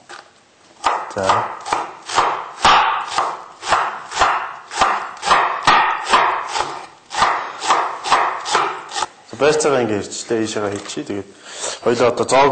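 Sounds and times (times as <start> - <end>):
knife chopping filling for Mongolian buuz dumplings: 0.8 - 9.1
speech: 1.2 - 1.6, 9.4 - 12.5.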